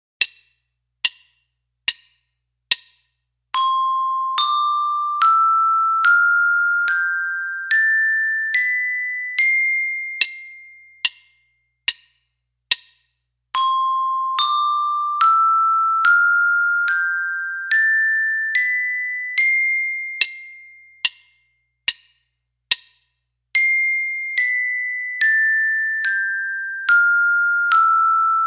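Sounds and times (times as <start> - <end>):
glockenspiel: 3.6 - 11.6, 13.6 - 21.4, 23.6 - 28.4.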